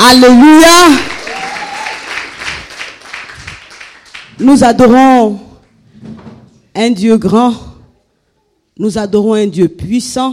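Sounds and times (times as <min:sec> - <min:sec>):
speech: 0:00.0 - 0:01.1, 0:04.4 - 0:05.4, 0:06.8 - 0:07.7, 0:08.8 - 0:10.3
audience applauding and cheering: 0:00.8 - 0:04.6
high whoop: 0:01.2 - 0:02.3.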